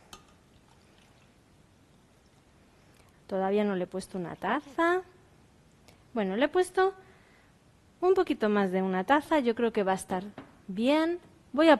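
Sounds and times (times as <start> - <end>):
water pouring into a bowl: 0.2 - 2.6
speech: 3.3 - 5.1, 6.1 - 7.1, 8.0 - 11.7.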